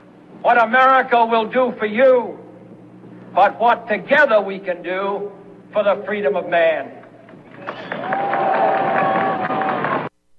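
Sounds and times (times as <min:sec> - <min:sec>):
speech: 0:00.4 - 0:02.4, 0:03.3 - 0:07.0
audience applause: 0:07.5 - 0:10.1.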